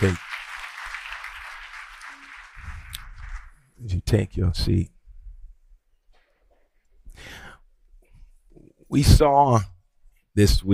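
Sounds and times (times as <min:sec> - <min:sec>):
speech: 0:00.0 - 0:00.2, 0:03.8 - 0:05.0, 0:08.9 - 0:09.7, 0:10.4 - 0:10.7
church congregation clapping their hands in praise: 0:00.0 - 0:03.8.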